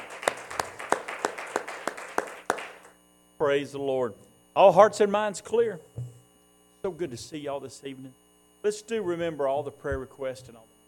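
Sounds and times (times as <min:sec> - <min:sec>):
audience hand clapping in praise: 0:00.0 - 0:03.0
speech: 0:03.4 - 0:06.1, 0:06.8 - 0:10.7.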